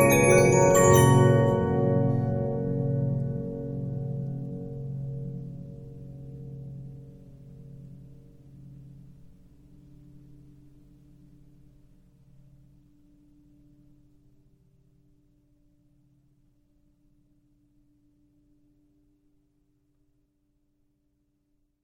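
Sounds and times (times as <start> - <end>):
Regina 15-inch disc music box: 0.0 - 3.8.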